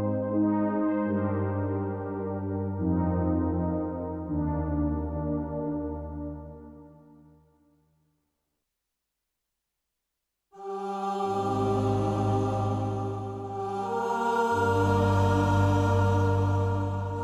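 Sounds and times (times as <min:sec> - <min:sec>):
synth: 0:00.0 - 0:07.1, 0:10.6 - 0:17.2.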